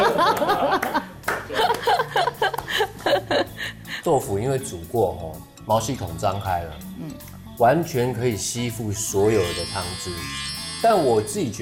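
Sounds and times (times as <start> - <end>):
laughter: 0.0 - 3.8
hand clapping: 0.3 - 2.9
speech: 4.1 - 11.6.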